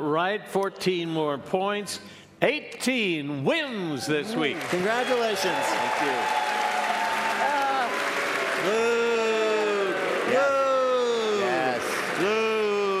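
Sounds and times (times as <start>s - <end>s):
speech: 0.1s - 6.4s
canned applause: 4.2s - 12.9s
whooping cheers: 4.8s - 11.5s.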